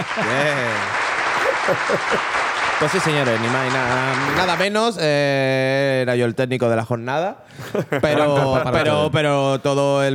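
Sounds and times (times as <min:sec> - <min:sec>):
laughter: 0:00.0 - 0:04.8, 0:07.6 - 0:09.2
applause: 0:00.0 - 0:05.0
speech: 0:00.2 - 0:01.0, 0:01.6 - 0:10.1.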